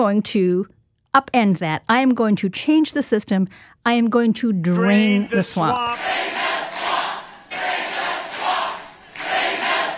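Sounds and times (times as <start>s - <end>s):
speech: 0.0s - 6.6s
large rally crowd roaring and applauding: 5.8s - 9.9s.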